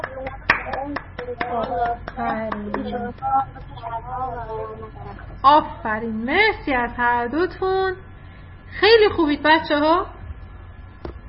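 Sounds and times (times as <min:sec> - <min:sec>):
children clapping in a group lesson: 0:00.0 - 0:03.3
speech: 0:01.4 - 0:08.1, 0:08.7 - 0:10.2.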